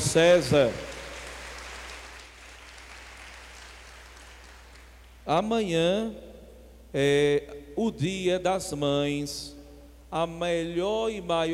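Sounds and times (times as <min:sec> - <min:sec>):
crowd applause for a priest: 0:00.0 - 0:05.0
speech: 0:00.1 - 0:00.9, 0:05.3 - 0:06.3, 0:06.9 - 0:11.5.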